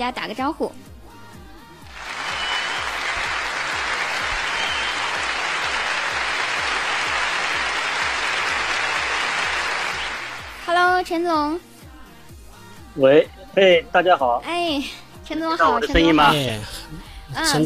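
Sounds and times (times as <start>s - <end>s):
speech: 0.0s - 0.9s, 10.8s - 11.7s, 13.0s - 17.6s
audience applause: 1.9s - 10.6s.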